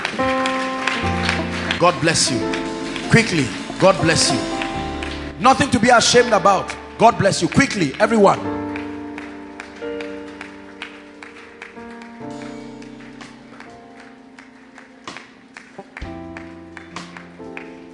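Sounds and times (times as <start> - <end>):
crowd clapping along: 0.0 - 17.9
sustained keyboard or organ chords: 0.0 - 17.9
speech: 1.8 - 4.6, 5.4 - 8.6.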